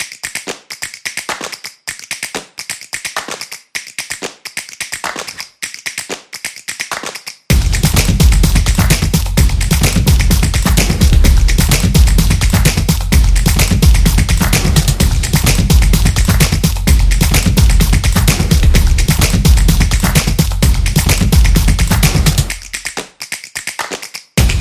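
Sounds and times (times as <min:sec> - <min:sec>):
percussive rhythm: 0:00.0 - 0:24.5.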